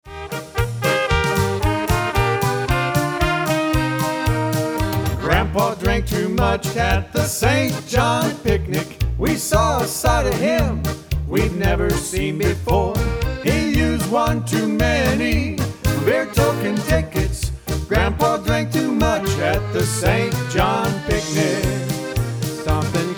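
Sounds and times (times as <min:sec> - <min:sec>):
polka music: 0:00.0 - 0:23.1.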